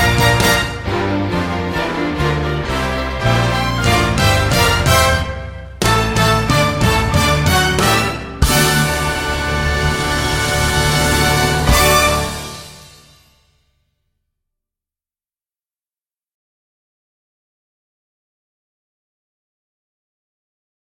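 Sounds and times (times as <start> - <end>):
instrumental music: 0.0 - 13.6.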